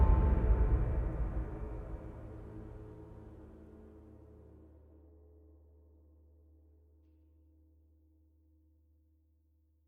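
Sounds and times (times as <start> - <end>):
trailer string music: 0.0 - 5.2.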